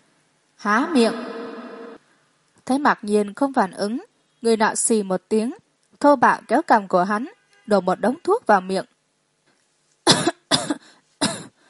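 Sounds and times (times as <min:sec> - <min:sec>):
speech: 0:00.6 - 0:01.3, 0:02.7 - 0:08.9
repeated dry coughing: 0:10.1 - 0:11.6.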